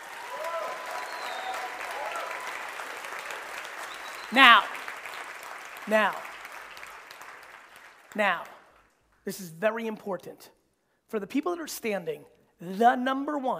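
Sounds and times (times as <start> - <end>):
audience applause: 0.0 - 8.9
speech: 4.3 - 4.8, 5.9 - 6.3, 8.1 - 8.6, 9.2 - 13.5.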